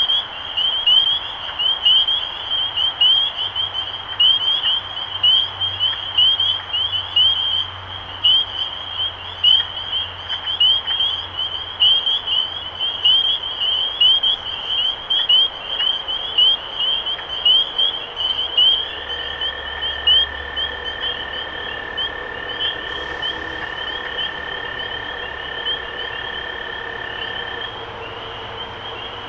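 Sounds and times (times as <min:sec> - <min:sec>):
spring peepers chorus of peeps: 0:00.0 - 0:29.2
steady hum: 0:17.6 - 0:29.2.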